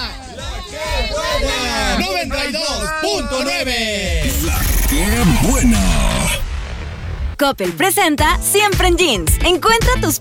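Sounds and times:
group of voices shouting a war cry: 0:00.0 - 0:04.1
speech: 0:02.0 - 0:06.2, 0:07.4 - 0:10.1.

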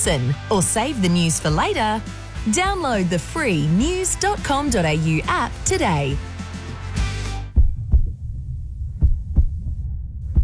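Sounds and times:
speech: 0:00.0 - 0:06.3
bus driver's heartbeat: 0:02.4 - 0:10.4.

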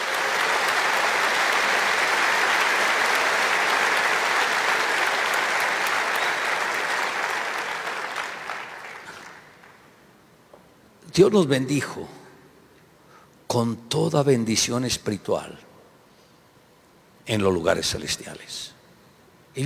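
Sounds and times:
audience applause: 0:00.0 - 0:09.9
speech: 0:11.2 - 0:12.2, 0:13.5 - 0:15.7, 0:17.3 - 0:18.8.

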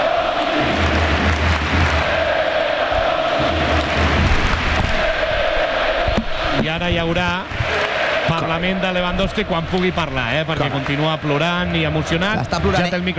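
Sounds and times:
Camp Nou stadium crowd applauding: 0:00.0 - 0:05.4, 0:07.4 - 0:13.1
Camp Nou stadium crowd chanting: 0:00.0 - 0:12.2
speech: 0:06.7 - 0:13.1.

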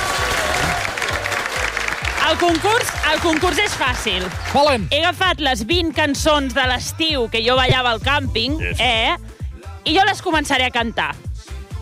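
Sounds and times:
crowd clapping at a campsite contest: 0:00.0 - 0:04.9
speech: 0:02.3 - 0:11.2.

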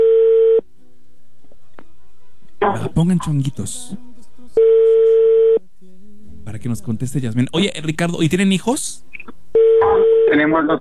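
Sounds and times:
telephone ringback tone: 0:00.0 - 0:00.6, 0:04.6 - 0:05.6, 0:09.6 - 0:10.4
speech: 0:02.8 - 0:04.1, 0:06.5 - 0:09.1, 0:10.3 - 0:10.7.

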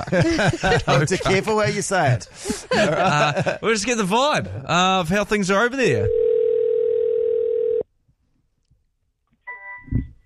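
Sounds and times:
laughter: 0:00.0 - 0:04.7
speech: 0:00.1 - 0:06.2
low electronic ringback tone on an outgoing phone line: 0:06.1 - 0:07.8.

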